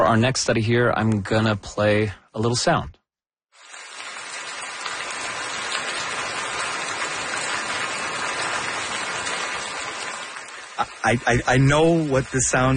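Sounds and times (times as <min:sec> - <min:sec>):
speech: 0:00.1 - 0:03.0, 0:11.0 - 0:12.7
falling water like a rain shower: 0:03.6 - 0:12.7.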